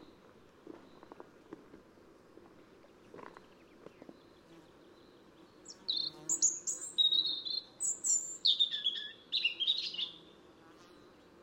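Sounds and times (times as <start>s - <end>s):
European robin (Erithacus rubecula) song with high warbled phrases: 5.7s - 10.2s.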